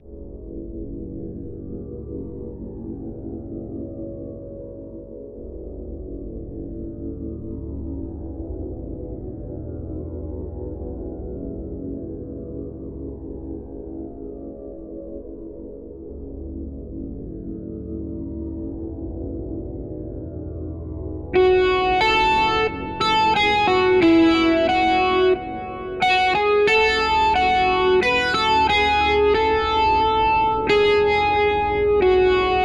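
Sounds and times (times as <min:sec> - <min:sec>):
instrumental extended metal remix: 0:21.4 - 0:32.6.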